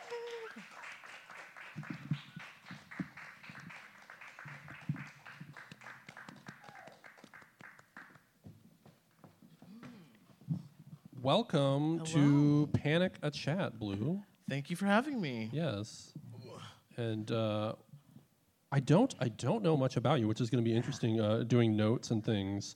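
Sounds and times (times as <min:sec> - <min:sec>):
audience applause: 0:00.0 - 0:08.2
speech: 0:11.3 - 0:16.2, 0:17.0 - 0:17.8, 0:18.7 - 0:22.7.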